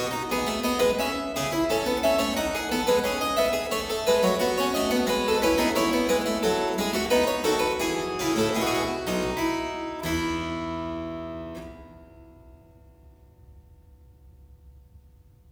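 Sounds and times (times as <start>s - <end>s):
contrapuntal piece in F major on keyboard: 0.0s - 11.8s.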